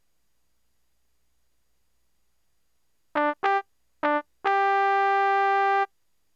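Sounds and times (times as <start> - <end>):
magic trumpet toot: 3.2 - 5.9.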